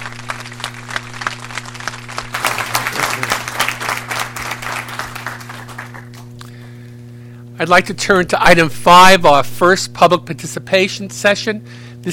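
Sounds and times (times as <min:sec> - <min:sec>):
round of applause: 0:00.0 - 0:06.4
speech: 0:07.6 - 0:12.1.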